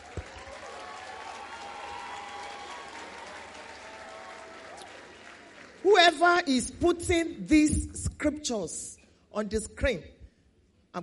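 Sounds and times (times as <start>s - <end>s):
audience applause: 0.0s - 5.8s
speech: 6.1s - 10.1s.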